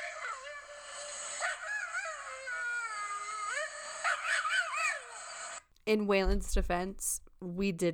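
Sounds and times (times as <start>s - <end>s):
excited Staffordshire terrier screaming howl: 0.0s - 5.7s
speech: 5.9s - 7.9s.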